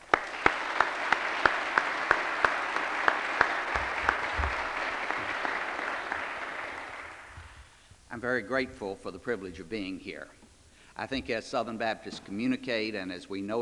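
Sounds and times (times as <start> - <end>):
audience applause at a Southern Baptist gathering welcoming a speaker: 0.0 - 7.6
speech: 8.2 - 10.4, 11.0 - 13.6.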